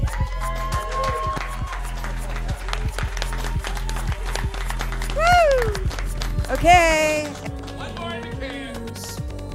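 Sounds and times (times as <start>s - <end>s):
whoop or whistle: 0.0s - 2.3s, 5.1s - 5.9s
audience clapping: 0.0s - 9.2s
speech: 6.6s - 7.3s.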